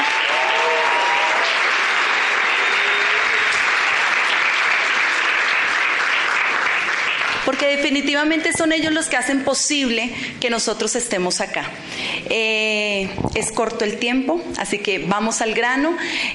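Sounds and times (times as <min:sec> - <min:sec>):
audience clapping: 0:00.0 - 0:08.2
speech: 0:07.6 - 0:16.3.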